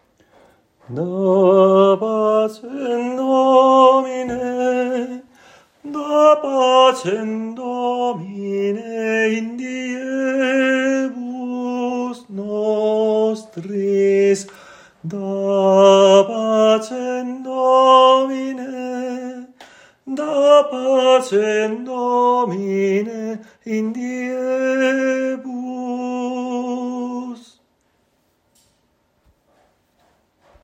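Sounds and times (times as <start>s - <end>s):
tenor singing: 0.8s - 27.6s.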